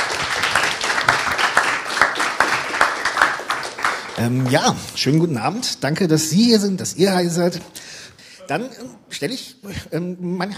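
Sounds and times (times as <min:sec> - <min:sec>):
audience applauding: 0:00.0 - 0:04.8
speech: 0:04.2 - 0:10.5.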